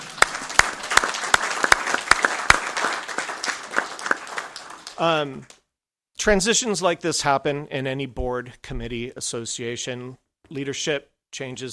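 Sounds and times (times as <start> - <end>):
crowd applauding: 0.0 - 5.5
speech: 5.0 - 5.6, 6.2 - 11.7.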